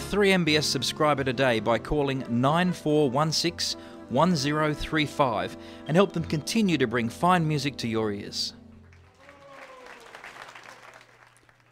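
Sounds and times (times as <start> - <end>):
speech: 0.1 - 8.6
crowd warm applause: 8.7 - 11.7.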